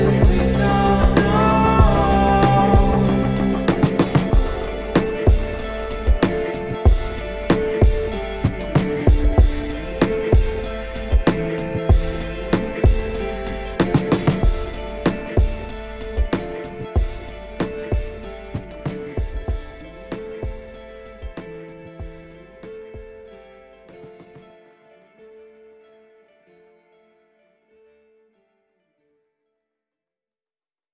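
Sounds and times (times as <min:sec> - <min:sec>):
didgeridoo: 0:00.0 - 0:21.4.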